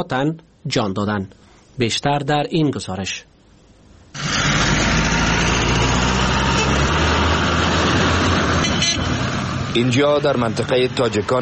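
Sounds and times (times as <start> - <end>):
speech: 0.0 - 3.3, 9.8 - 11.4
cargo trucks idling in convoy: 4.2 - 11.4.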